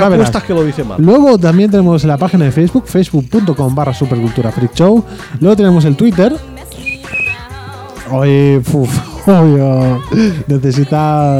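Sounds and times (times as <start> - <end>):
speech: 0.0 - 6.5, 8.1 - 11.3
person imitating bird warbling calls: 6.8 - 7.4.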